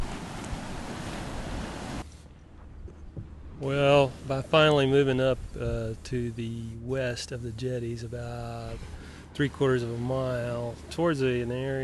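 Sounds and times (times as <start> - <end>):
ocean waves breaking near the jetties: 0.0 - 11.8
speech: 3.6 - 11.8.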